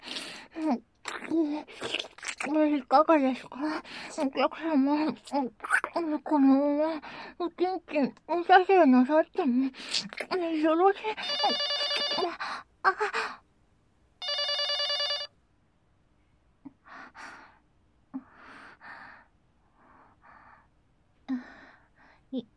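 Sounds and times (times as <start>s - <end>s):
speech: 1.4s - 13.4s, 22.3s - 22.5s
telephone ringing: 11.2s - 12.3s, 14.2s - 15.4s.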